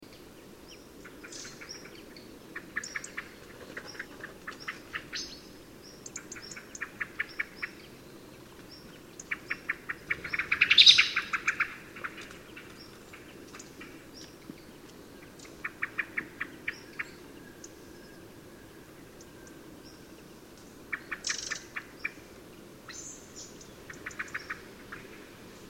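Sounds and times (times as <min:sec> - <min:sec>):
hiss: 0:00.0 - 0:25.6
common blackbird clicking chink calls: 0:02.6 - 0:05.3, 0:06.0 - 0:07.9, 0:08.7 - 0:17.7, 0:20.9 - 0:22.2, 0:23.6 - 0:25.2.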